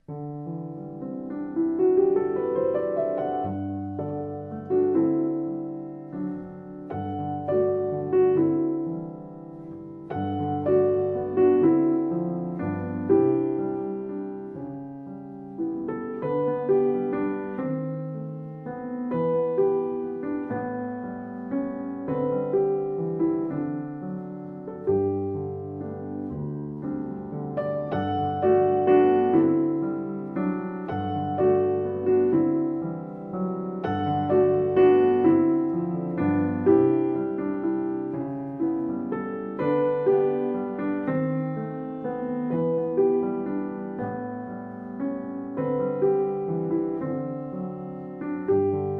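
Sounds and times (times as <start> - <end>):
solo piano: 0.0 - 48.9.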